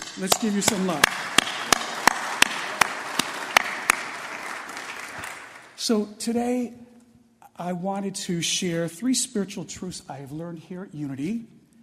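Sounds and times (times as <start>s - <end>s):
slow steady rhythmic applause: 0.0s - 5.8s
speech: 0.2s - 1.3s, 5.9s - 6.9s, 7.6s - 11.6s.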